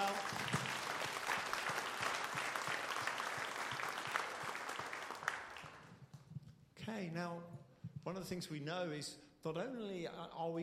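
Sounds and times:
audience applauding: 0.0s - 6.0s
speech: 6.9s - 10.6s.

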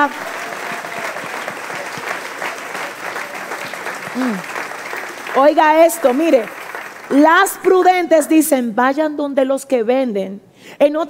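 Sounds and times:
speech: 0.0s - 0.4s, 5.4s - 11.0s
audience applause: 0.0s - 7.7s.

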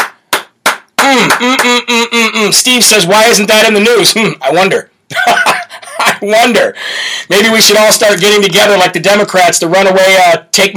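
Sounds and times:
sharp hand claps: 0.0s - 1.8s
speech: 1.2s - 5.4s, 6.2s - 10.7s.

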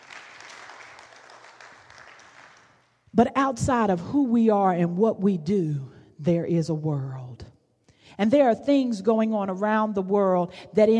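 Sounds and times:
audience applause: 0.0s - 2.8s
speech: 3.1s - 7.5s, 8.1s - 10.9s.

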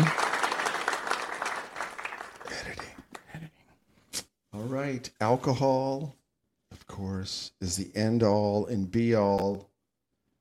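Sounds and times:
crowd cheering and applause: 0.0s - 2.6s
speech: 4.8s - 6.2s, 7.0s - 9.7s.

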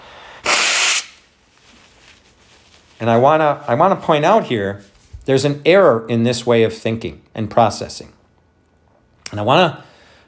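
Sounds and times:
person blowing nose: 0.0s - 1.2s
speech: 3.0s - 8.2s, 9.3s - 9.9s.

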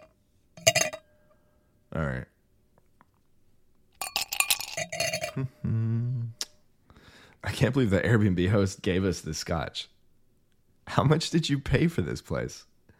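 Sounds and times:
ice clinking in glass: 0.6s - 1.0s, 4.0s - 5.4s
speech: 1.9s - 2.3s, 4.8s - 6.4s, 7.4s - 9.9s, 10.9s - 12.7s.

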